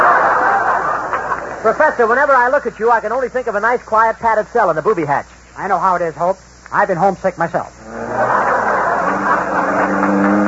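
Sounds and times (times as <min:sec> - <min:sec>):
laughter: 0:00.0 - 0:02.0, 0:07.8 - 0:10.4
speech: 0:01.6 - 0:08.0
car engine humming during a ride: 0:07.8 - 0:10.4.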